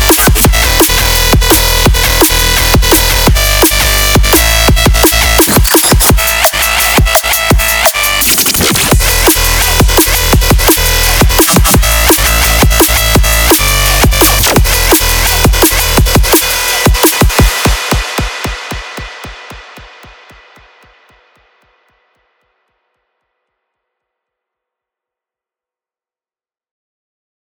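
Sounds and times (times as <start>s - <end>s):
club EDM: 0.0s - 20.8s.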